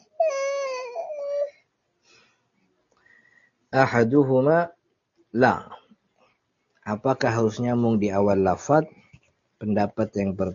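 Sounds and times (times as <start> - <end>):
child crying: 0.0 - 1.5
speech: 3.7 - 5.8, 6.9 - 9.0, 9.6 - 10.5.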